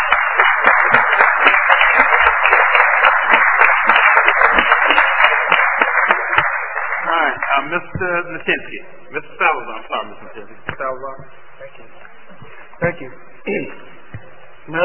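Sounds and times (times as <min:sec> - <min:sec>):
audience applause: 0:00.0 - 0:07.9
speech: 0:07.7 - 0:12.0, 0:12.8 - 0:14.0, 0:14.6 - 0:14.8.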